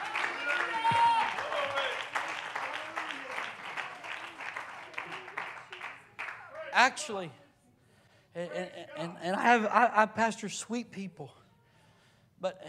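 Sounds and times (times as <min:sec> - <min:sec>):
audience clapping hands: 0:00.0 - 0:06.8
speech: 0:06.8 - 0:07.4, 0:08.4 - 0:11.4, 0:12.4 - 0:12.6.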